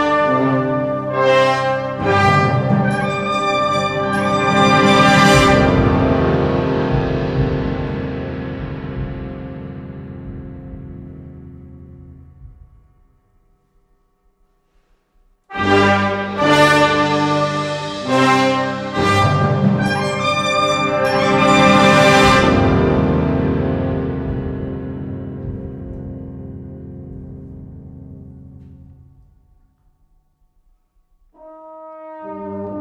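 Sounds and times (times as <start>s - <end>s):
band playing folk song settings: 0.2s - 10.7s, 15.6s - 26.3s.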